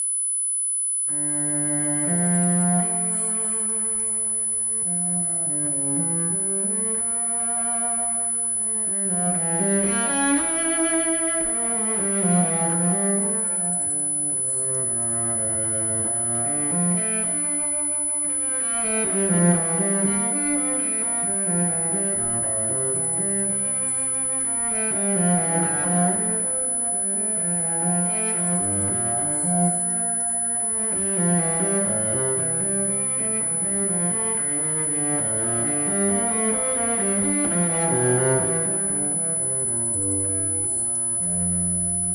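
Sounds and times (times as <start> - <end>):
cello suite: 0.8 - 42.1.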